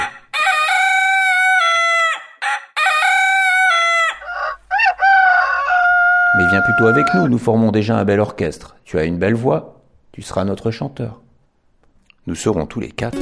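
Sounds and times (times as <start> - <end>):
rooster crowing: 0.0 - 7.4
speech: 6.6 - 11.2, 12.2 - 13.1.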